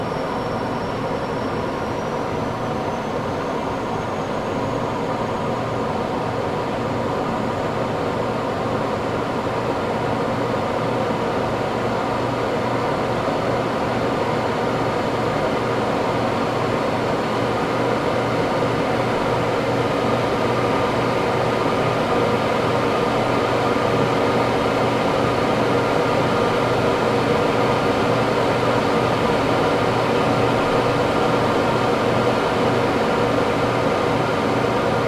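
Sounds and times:
1947 Gloster Meteor F Mk8 fighter jet interior on approach: 0.0 - 35.0.

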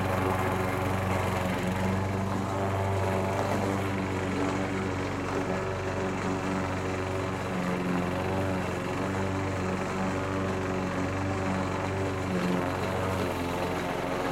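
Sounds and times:
household lawn mower running over rough rocky terrain: 0.0 - 14.3.

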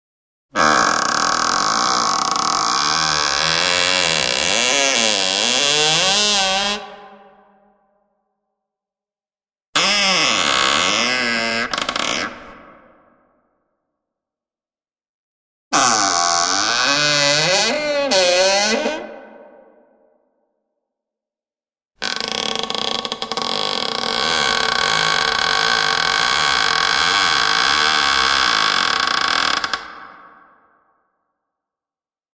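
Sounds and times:
creepy wooden door creaking with reverb: 0.6 - 7.1, 9.8 - 12.6, 15.8 - 19.4, 22.0 - 30.1.

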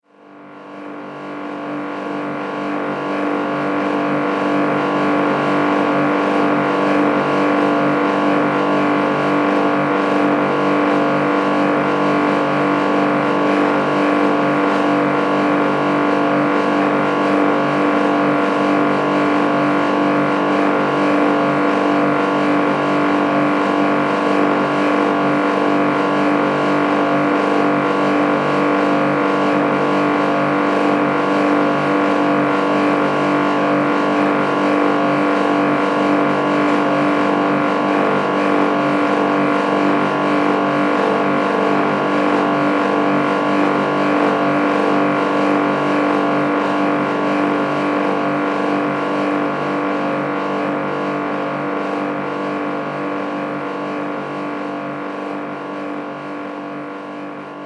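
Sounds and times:
noisy dehumidifier running in a basement: 0.4 - 57.6.

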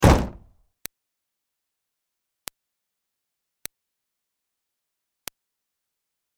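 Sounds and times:
Smart car door closing with a slam: 0.0 - 0.5.

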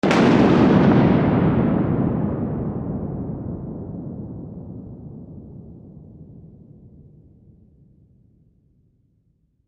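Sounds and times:
thunder clap: 0.0 - 5.8.

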